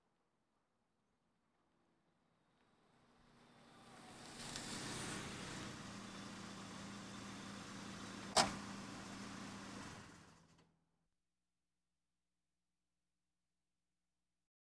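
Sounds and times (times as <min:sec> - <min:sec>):
various automobiles: 0:02.6 - 0:10.6.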